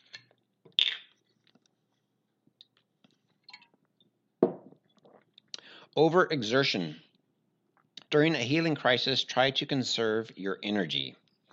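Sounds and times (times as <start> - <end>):
spring water bottle cap opening: 0.0 - 1.2
speech: 6.0 - 7.1, 8.1 - 11.2.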